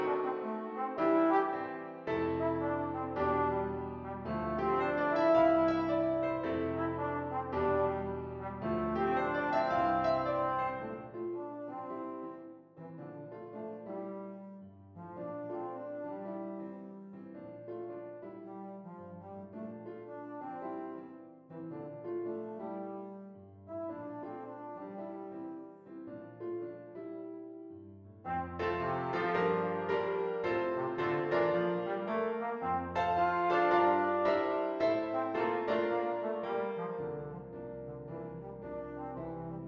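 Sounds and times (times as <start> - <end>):
trombone melody: 0.0 - 17.2, 18.4 - 25.8, 28.2 - 39.6.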